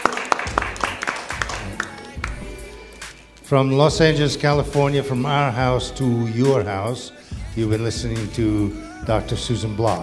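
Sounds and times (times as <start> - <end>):
clapping: 0.0 - 3.1
speech: 3.5 - 10.0.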